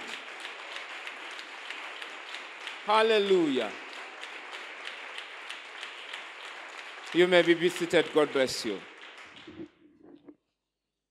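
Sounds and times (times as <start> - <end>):
audience applauding: 0.0 - 9.9
speech: 2.8 - 3.8, 7.1 - 8.9.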